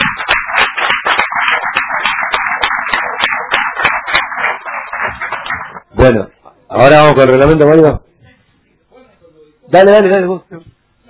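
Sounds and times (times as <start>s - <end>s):
applause: 0.0s - 5.8s
speech: 6.0s - 8.0s, 9.7s - 10.6s.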